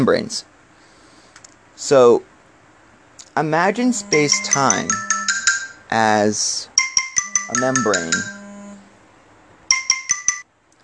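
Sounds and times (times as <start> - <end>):
speech: 0.0 - 0.5, 1.8 - 2.3, 3.4 - 5.1, 5.9 - 6.7, 7.5 - 8.4
alarm going off: 3.7 - 5.8, 7.2 - 8.9.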